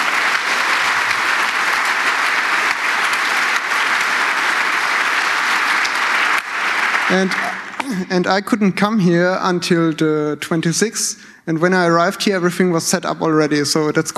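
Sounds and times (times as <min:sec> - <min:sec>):
audience applause: 0:00.0 - 0:08.4
speech: 0:07.1 - 0:14.1.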